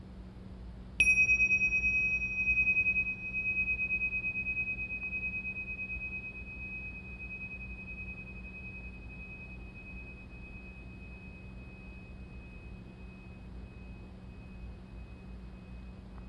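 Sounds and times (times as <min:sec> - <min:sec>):
faint low hum: 0:00.0 - 0:16.2
bell struck and ringing out: 0:01.0 - 0:13.3.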